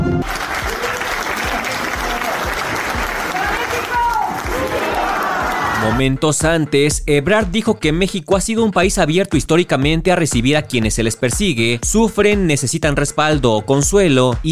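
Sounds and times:
audience applause after national anthem: 0.2s - 6.0s
speech: 6.0s - 14.5s.

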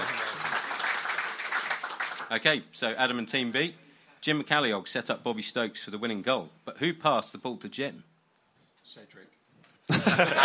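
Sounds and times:
round of applause: 0.0s - 2.4s
speech: 2.3s - 8.1s, 8.8s - 10.4s
laughter: 9.9s - 10.4s.

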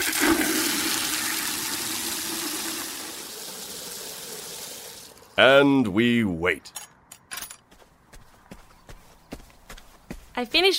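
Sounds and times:
water poured onto planted seed: 0.0s - 5.3s
speech: 5.4s - 6.8s, 10.4s - 10.7s.

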